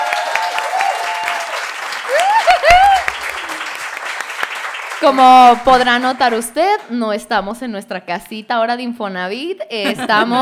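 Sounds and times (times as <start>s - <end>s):
audience applause: 0.0s - 6.9s
laughter: 2.1s - 3.7s, 9.8s - 10.3s
speech: 5.0s - 10.3s.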